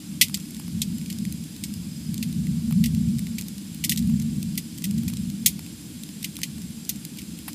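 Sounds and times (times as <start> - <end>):
fire crackling: 0.0 - 7.5.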